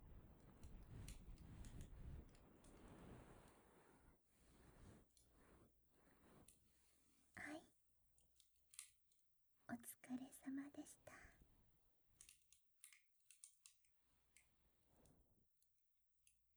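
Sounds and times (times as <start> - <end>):
slow gentle nibbling on the left: 0.0 - 7.6, 10.0 - 15.3.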